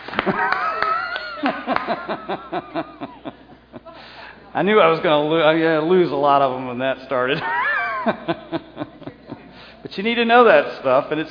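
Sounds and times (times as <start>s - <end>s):
class clapping: 0.0s - 2.0s
laughter: 0.1s - 4.2s, 7.3s - 9.7s
speech: 1.7s - 3.4s, 4.5s - 8.7s, 9.9s - 11.2s.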